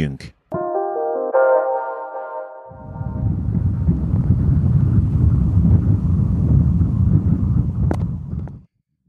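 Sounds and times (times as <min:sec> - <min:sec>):
brief tonal sound: 0:00.5 - 0:03.7
strong crosswind buffeting the microphone on a bike ride: 0:02.8 - 0:08.7.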